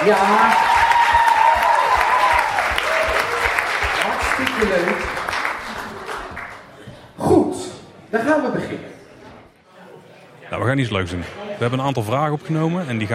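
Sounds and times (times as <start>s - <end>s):
speech: 0.0s - 0.7s, 4.6s - 5.2s, 8.1s - 8.8s, 10.6s - 13.1s
audience applause: 0.0s - 6.8s.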